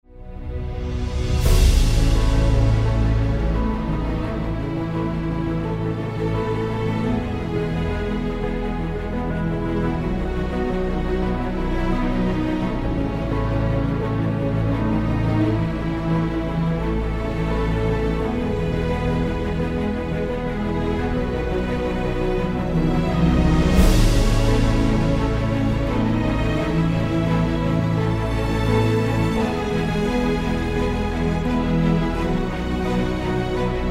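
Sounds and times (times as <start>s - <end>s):
documentary background music: 0.0s - 33.8s.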